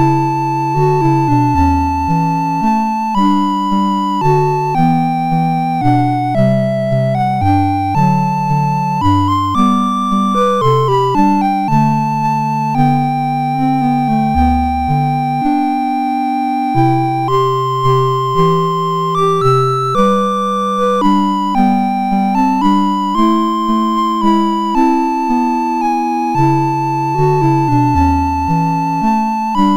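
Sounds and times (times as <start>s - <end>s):
chiptune music on MOS6581R2 chip: 0.0s - 29.7s.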